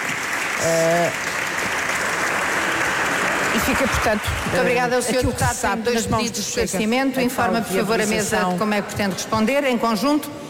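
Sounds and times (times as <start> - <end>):
standing applause: 0.0 - 5.5
speech: 0.6 - 1.4, 3.7 - 10.4.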